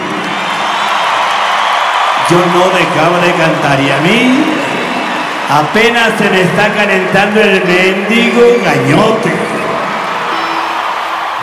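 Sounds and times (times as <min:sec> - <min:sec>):
concert crowd applauding and cheering: 0:00.0 - 0:11.4
speech: 0:02.3 - 0:04.7, 0:05.5 - 0:09.5.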